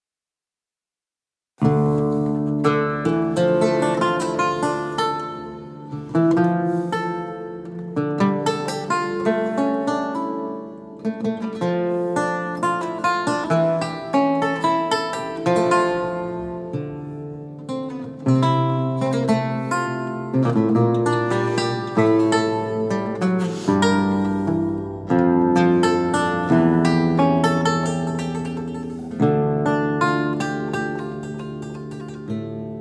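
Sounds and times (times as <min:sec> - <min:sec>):
prelude: 0:01.6 - 0:32.7.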